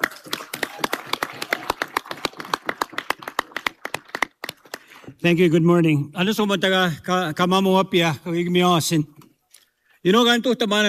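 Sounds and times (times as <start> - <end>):
audience clapping: 0.0 - 5.2
speech: 5.2 - 9.2, 10.0 - 10.8.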